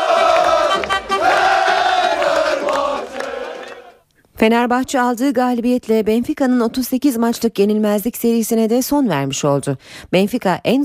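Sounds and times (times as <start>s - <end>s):
Fenerbahçe football fans celebrating in the streets: 0.0s - 4.0s
speech: 4.4s - 10.8s.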